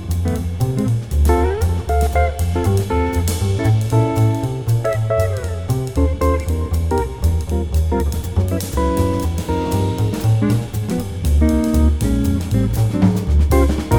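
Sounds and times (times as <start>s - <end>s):
modern jazz piano play-along in Eb: 0.0s - 13.9s.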